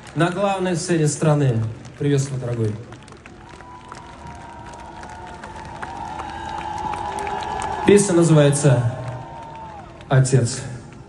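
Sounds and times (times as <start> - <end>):
audience applause: 0.0 - 11.0
speech: 0.2 - 3.0, 7.9 - 9.0, 10.1 - 10.7
audience cheering: 2.4 - 10.7.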